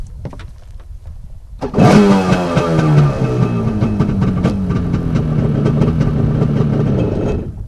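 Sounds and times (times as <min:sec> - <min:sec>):
jet ski engine running: 0:01.6 - 0:07.6.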